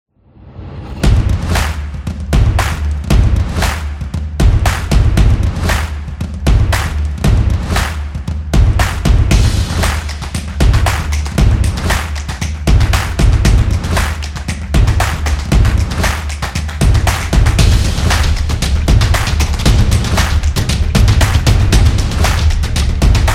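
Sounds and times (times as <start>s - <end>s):
beats: 1.0s - 23.3s.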